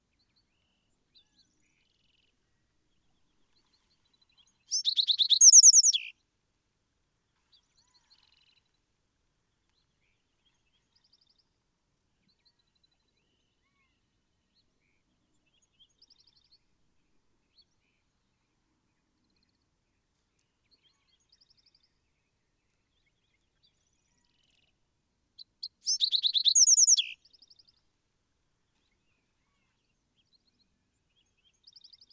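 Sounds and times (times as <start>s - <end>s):
Bewick's Wren: 25.9s - 27.1s.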